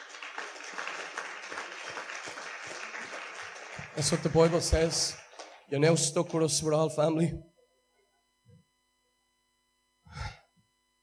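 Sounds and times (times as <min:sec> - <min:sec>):
audience applause: 0:00.0 - 0:06.5
speech: 0:04.0 - 0:07.5.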